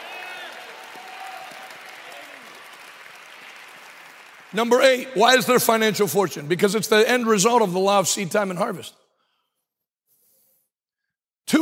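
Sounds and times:
audience shouting and cheering: 0.0s - 2.7s
audience hand clapping: 0.0s - 6.1s
speech: 4.5s - 9.0s.

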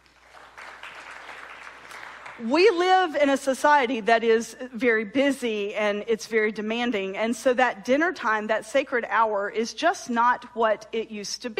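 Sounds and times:
audience clapping in response: 0.0s - 2.5s
speech: 2.4s - 11.5s.

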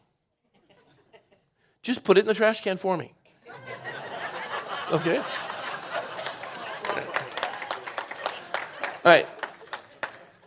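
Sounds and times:
laughter: 0.4s - 1.5s, 3.4s - 10.4s
speech: 1.8s - 3.2s, 4.9s - 5.4s, 9.0s - 9.4s
audience clapping: 4.4s - 10.4s.

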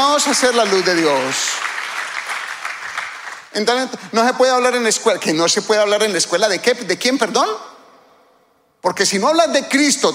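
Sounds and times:
speech: 0.0s - 1.7s, 3.6s - 7.7s, 8.8s - 10.1s
audience clapping: 0.0s - 4.0s.

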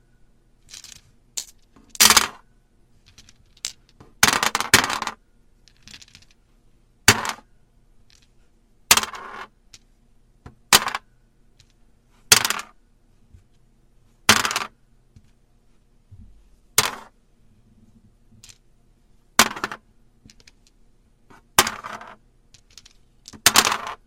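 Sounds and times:
backgammon pieces clattering on a hard surface: 0.7s - 2.4s, 3.0s - 6.4s, 8.1s - 8.3s, 8.9s - 9.9s, 10.7s - 12.7s, 14.3s - 14.7s, 16.8s - 17.1s, 18.4s - 18.6s, 19.4s - 20.8s, 21.6s - 24.0s.

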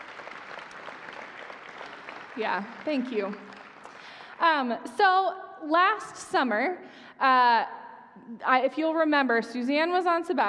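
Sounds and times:
audience applause: 0.0s - 4.7s
speech: 2.4s - 3.6s, 4.4s - 10.4s.

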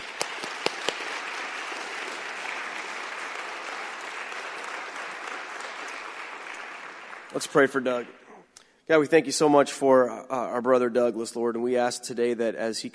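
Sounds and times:
church congregation applause welcoming back a returning speaker: 0.0s - 8.2s
speech: 7.3s - 8.2s, 8.9s - 12.9s.

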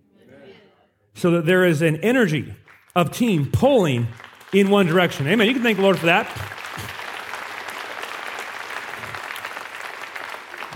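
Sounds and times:
speech: 1.2s - 6.9s
audience golf clap applause: 2.6s - 10.7s.

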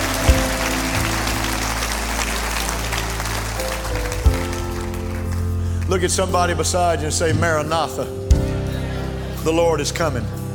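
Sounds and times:
audience clapping hands: 0.0s - 6.5s
speech: 5.9s - 8.2s, 9.4s - 10.4s.

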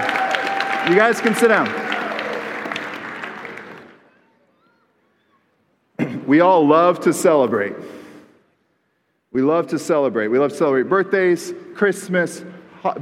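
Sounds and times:
crowd applauding for the kids at a celebratory event: 0.0s - 4.4s
speech: 0.8s - 1.8s, 6.3s - 8.0s, 9.3s - 13.0s.

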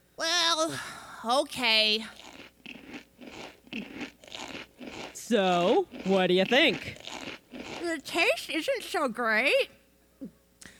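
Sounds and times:
speech: 0.6s - 2.2s, 5.3s - 7.0s, 7.9s - 10.3s
Cosmo Flakes cereal being crunched: 2.0s - 8.2s.

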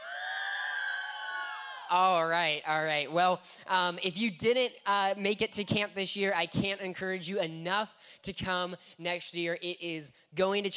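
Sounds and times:
audience yelling and cheering: 0.0s - 2.4s
speech: 1.9s - 10.7s.

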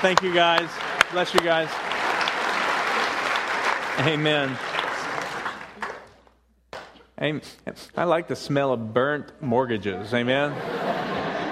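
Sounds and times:
speech: 0.0s - 1.9s, 4.0s - 4.7s, 7.2s - 11.1s
crowd applause: 0.0s - 6.2s, 10.6s - 11.5s
laughter: 10.2s - 11.5s.

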